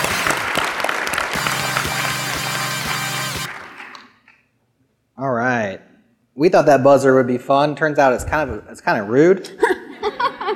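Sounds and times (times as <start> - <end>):
audience applause: 0.0 - 4.1
speech: 6.4 - 9.7
laughter: 9.5 - 10.5.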